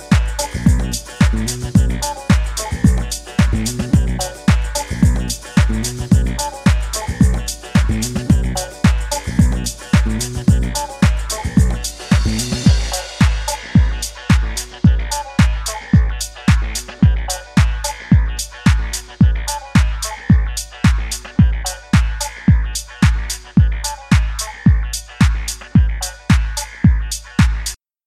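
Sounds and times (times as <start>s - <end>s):
groove engine: 0.0s - 27.8s.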